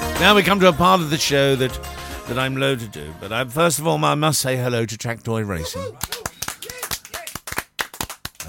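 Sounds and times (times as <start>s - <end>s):
speech: 0.2s - 6.2s
round of applause: 5.9s - 8.4s.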